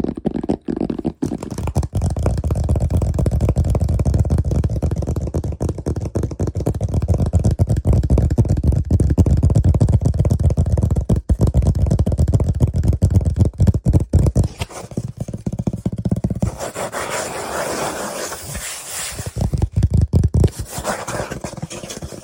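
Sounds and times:
fast aggressive tapping and scratching: 0.0s - 22.2s.

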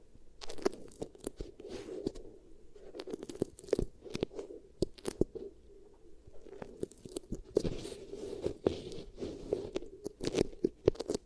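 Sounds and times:
beeswax pressed and worked, crunchy crackles: 0.0s - 11.2s.

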